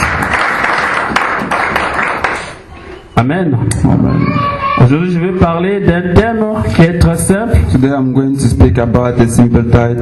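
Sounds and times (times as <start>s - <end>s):
church congregation applauding during a French-language service: 0.0s - 2.7s
speech: 3.2s - 10.0s.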